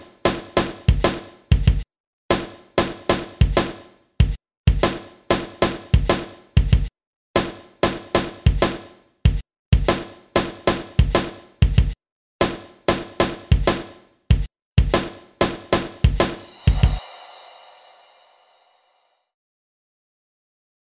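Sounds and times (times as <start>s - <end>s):
rock drum beat at 95 BPM: 0.3s - 1.8s, 2.4s - 18.7s.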